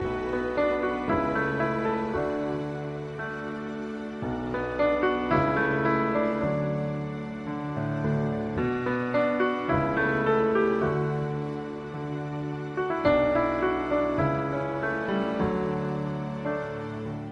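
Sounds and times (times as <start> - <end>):
piano ringtone: 0.0 - 17.3.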